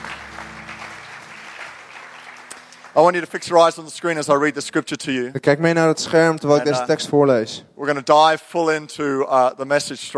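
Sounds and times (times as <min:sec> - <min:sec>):
audience applauding for the band: 0:00.0 - 0:03.9
speech: 0:03.0 - 0:10.1.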